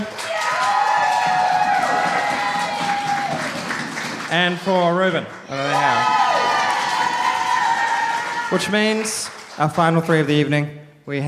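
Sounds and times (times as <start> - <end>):
audience applause and cheering for poets at a poetry slam: 0.0 - 10.4
speech: 4.4 - 6.2, 8.5 - 11.2.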